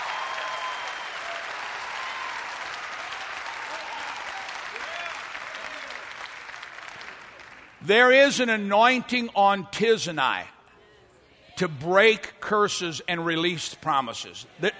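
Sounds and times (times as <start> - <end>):
audience clapping: 0.0 - 7.9
speech: 7.8 - 10.6, 11.6 - 14.7.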